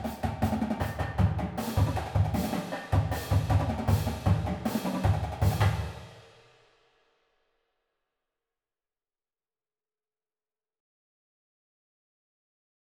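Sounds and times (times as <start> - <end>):
full drumline playing: 0.0 - 6.0.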